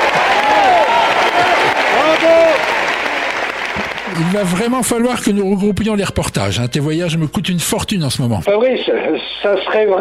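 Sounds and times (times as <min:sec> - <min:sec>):
audience applause: 0:00.0 - 0:05.3
speech: 0:04.2 - 0:09.9.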